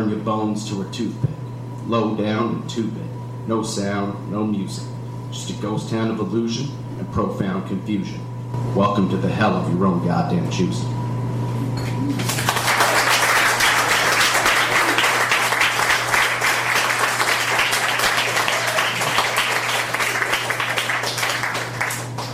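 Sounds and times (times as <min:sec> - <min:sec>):
speech: 0:00.0 - 0:11.0
audience applause: 0:12.1 - 0:22.3.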